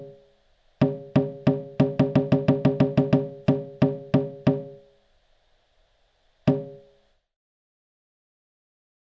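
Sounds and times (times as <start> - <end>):
solo drumming: 0.8 - 4.9, 6.5 - 6.9.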